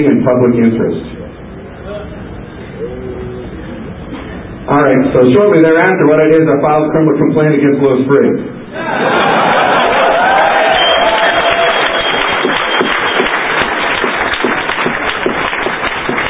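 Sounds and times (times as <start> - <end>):
speech: 0.0 - 1.2, 4.7 - 9.5
laughter: 8.7 - 10.7
audience clapping: 9.2 - 16.2.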